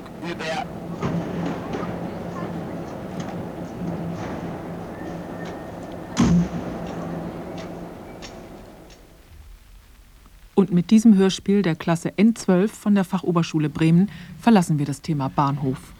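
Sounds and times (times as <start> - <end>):
old steam locomotive departing: 0.0 - 8.8
speech: 0.2 - 1.1, 10.7 - 15.9.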